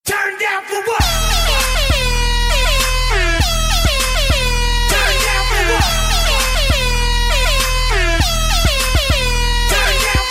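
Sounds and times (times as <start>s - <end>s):
horn: 1.0s - 10.2s.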